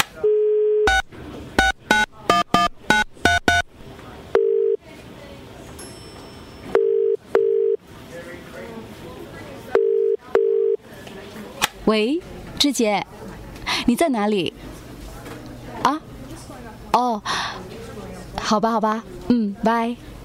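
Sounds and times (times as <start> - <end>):
paired telephone ringing tones: 0.2 - 3.6, 4.3 - 4.8, 6.6 - 7.8, 9.8 - 10.8
telephone keypad beeps: 0.8 - 3.7
speech: 11.9 - 13.1, 13.9 - 14.6, 18.5 - 20.1.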